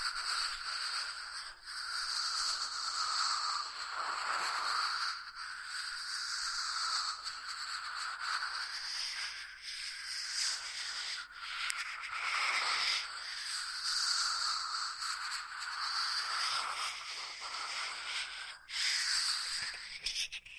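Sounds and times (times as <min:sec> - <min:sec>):
ear massage rubbing hiss: 0:00.0 - 0:20.4.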